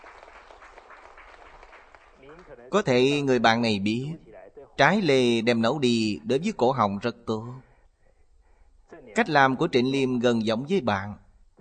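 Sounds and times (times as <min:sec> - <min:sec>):
audience applause at a lively show welcoming a participant: 0:00.0 - 0:02.9
speech: 0:02.4 - 0:04.2, 0:04.8 - 0:07.7, 0:09.2 - 0:11.2.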